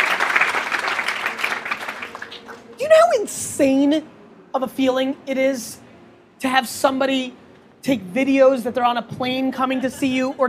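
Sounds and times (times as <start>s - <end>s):
audience clapping: 0.0s - 2.8s
speech: 3.1s - 5.8s, 6.4s - 10.4s.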